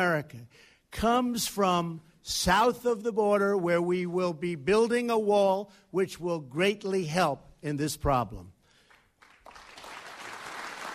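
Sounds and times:
speech: 0:00.0 - 0:08.6
applause at a political speech on border security: 0:08.9 - 0:10.9.

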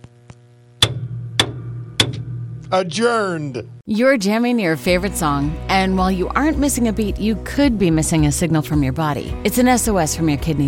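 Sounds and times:
gavel banging: 0:00.8 - 0:03.0
speech: 0:02.7 - 0:10.6.

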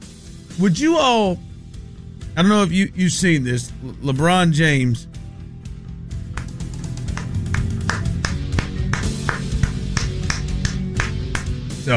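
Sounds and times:
speech: 0:00.6 - 0:01.5, 0:02.4 - 0:05.2
crowd clapping hands: 0:06.2 - 0:11.7.

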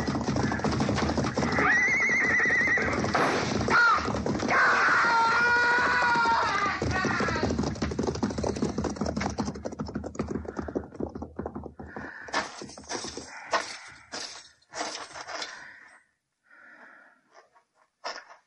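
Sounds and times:
hooves clip-clopping: 0:00.0 - 0:15.3
horse neighing: 0:00.4 - 0:04.1.

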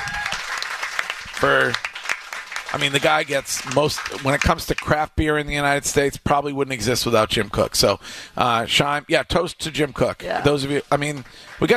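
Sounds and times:
round of applause for a guest arriving at a craft beer gathering: 0:00.0 - 0:04.9, 0:11.0 - 0:11.7
speech: 0:01.4 - 0:01.9, 0:02.7 - 0:11.7.

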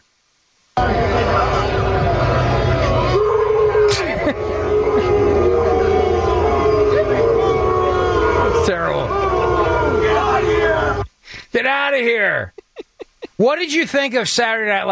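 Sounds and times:
crowd booing: 0:00.8 - 0:11.1
laughter: 0:03.7 - 0:09.0, 0:12.0 - 0:13.8
speech: 0:13.4 - 0:14.9.

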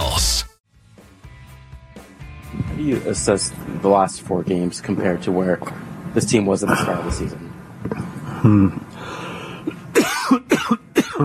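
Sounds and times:
speech: 0:02.8 - 0:08.8
person coughing after something went down the wrong pipe: 0:09.9 - 0:11.2.

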